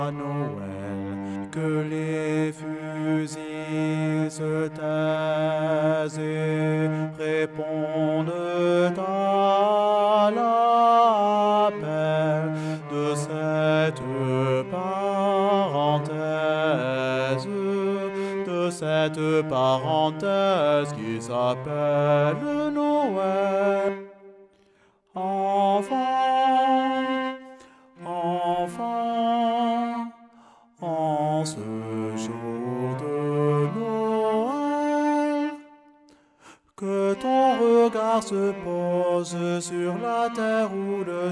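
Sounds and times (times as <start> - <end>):
baritone singing a Christmas carol: 0.0 - 24.0, 25.2 - 27.3, 28.0 - 30.2, 30.8 - 35.6, 36.8 - 41.3.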